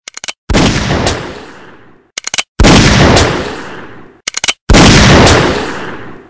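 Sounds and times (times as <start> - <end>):
gunshot: 0.5 - 1.8, 2.6 - 4.0, 4.7 - 6.2.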